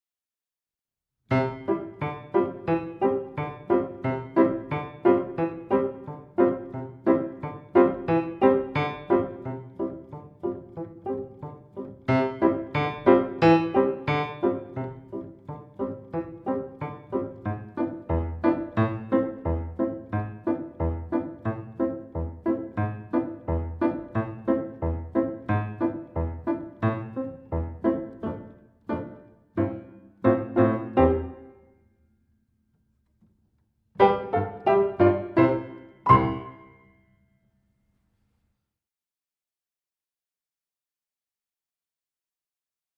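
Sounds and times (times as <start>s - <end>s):
instrumental music: 1.3s - 31.6s, 34.0s - 37.0s.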